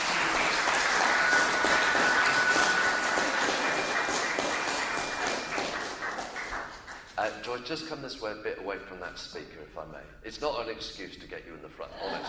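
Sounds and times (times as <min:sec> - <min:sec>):
audience applause: 0:00.0 - 0:07.2
speech: 0:07.5 - 0:12.2
laughter: 0:11.9 - 0:12.2.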